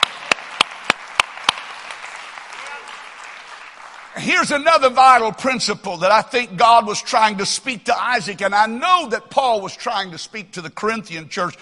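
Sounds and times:
audience clapping: 0:00.0 - 0:04.9
speech: 0:04.2 - 0:11.5.

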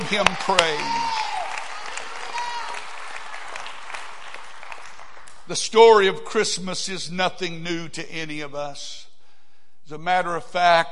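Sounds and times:
audience clapping hands in praise: 0:00.0 - 0:05.5
speech: 0:00.1 - 0:01.2, 0:05.5 - 0:09.0, 0:09.9 - 0:10.9.

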